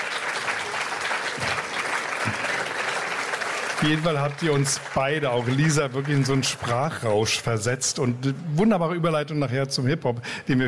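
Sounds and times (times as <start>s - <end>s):
audience applause: 0.0s - 7.6s
speech: 3.8s - 10.6s.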